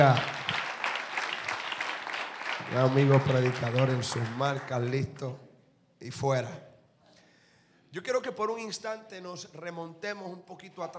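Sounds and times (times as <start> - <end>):
speech: 0.0 - 0.3, 2.7 - 5.4, 6.0 - 6.7, 7.9 - 10.9
crowd applause: 0.0 - 5.2.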